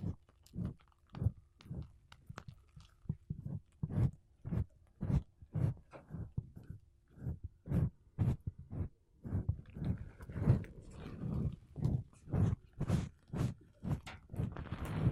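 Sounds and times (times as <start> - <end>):
makeup brushes and a sponge rubbing across a microphone: 3.4 - 15.1.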